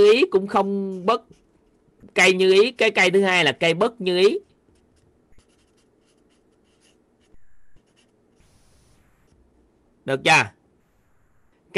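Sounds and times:
speech: 0.0s - 1.4s, 2.1s - 4.5s, 10.1s - 10.6s
abbreviations being written by hand: 4.7s - 9.4s.

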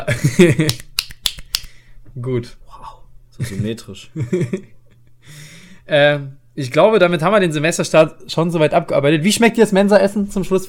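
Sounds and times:
speech: 0.0s - 0.8s, 2.2s - 10.6s
scattered hand claps: 0.6s - 1.8s.

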